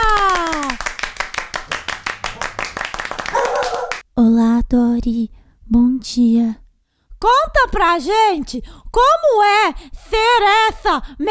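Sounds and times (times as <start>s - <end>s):
audience applause: 0.0s - 4.0s
speech: 4.7s - 6.6s, 7.2s - 11.2s.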